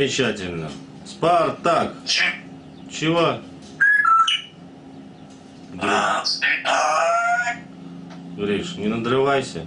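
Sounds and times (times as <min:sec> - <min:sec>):
speech: 0:00.0 - 0:03.5, 0:05.8 - 0:07.6, 0:08.4 - 0:09.6
grey parrot speech-like sounds: 0:02.1 - 0:02.5, 0:05.8 - 0:07.7
grey parrot whistling: 0:03.8 - 0:04.6.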